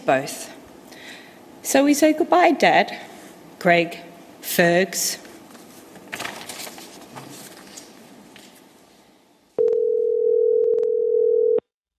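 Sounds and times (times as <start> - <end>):
speech: 0.0 - 0.6, 1.6 - 5.2
soft textured rustle: 5.2 - 8.7
telephone tone when calling voicemail: 9.6 - 11.7.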